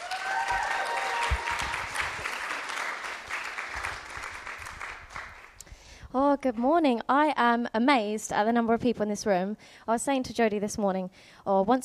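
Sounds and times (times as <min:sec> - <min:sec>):
crowd applause: 0:00.0 - 0:05.6
speech: 0:06.1 - 0:11.8.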